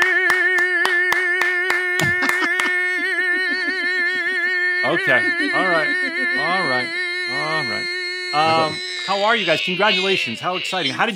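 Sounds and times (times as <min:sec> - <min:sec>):
audience clapping for an engaged couple at a live show: 0:00.0 - 0:03.1
laughter: 0:01.9 - 0:06.8
speech: 0:05.0 - 0:11.1
sustained musical tone: 0:05.1 - 0:08.8.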